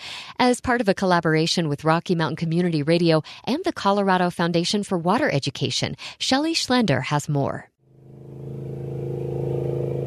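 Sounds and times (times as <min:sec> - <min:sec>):
speech: 0:00.4 - 0:07.7
motorboats towing water skiers across the North Sterling Reservoir: 0:07.8 - 0:10.0.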